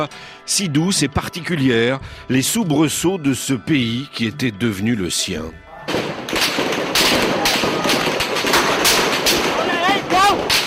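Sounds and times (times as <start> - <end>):
speech: 0.0 - 7.4
volleys of rubber bullets and live gunfire fired into a crowd: 5.9 - 10.6.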